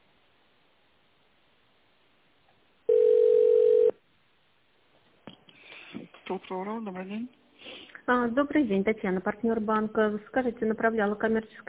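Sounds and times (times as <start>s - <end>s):
telephone beep tone after an automated phone menu: 2.9s - 3.9s
speech: 6.3s - 7.4s, 8.1s - 11.6s.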